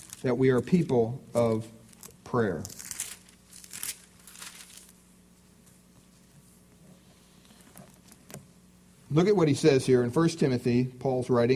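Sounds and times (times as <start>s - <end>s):
Bible pages being turned: 0.0s - 5.0s
speech: 0.2s - 2.8s, 9.1s - 11.5s.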